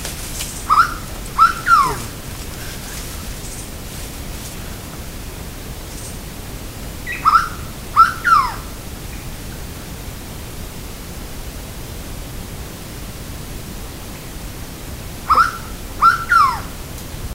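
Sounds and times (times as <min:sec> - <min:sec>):
soft hiss: 0:00.0 - 0:17.3
bird whistling: 0:00.6 - 0:03.6, 0:07.1 - 0:08.6, 0:15.3 - 0:16.7.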